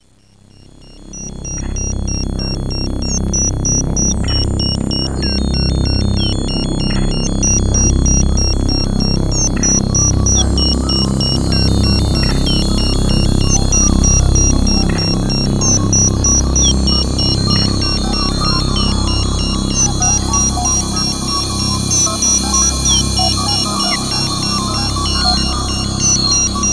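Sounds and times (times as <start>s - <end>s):
spacey ambient atmosphere: 0.0s - 26.7s.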